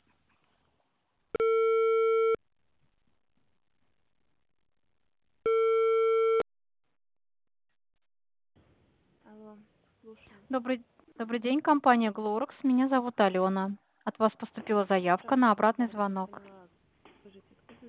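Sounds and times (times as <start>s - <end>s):
telephone ringback tone of an apartment-complex intercom: 1.4s - 2.4s, 5.5s - 6.4s
speech: 9.5s - 16.6s.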